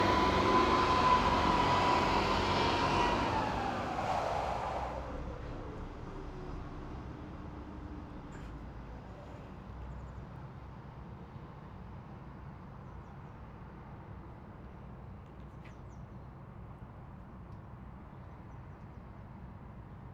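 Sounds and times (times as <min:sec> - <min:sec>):
distant Renault VAB armoured personnel carrier driving fast forward and reverse: 0:00.0 - 0:09.3.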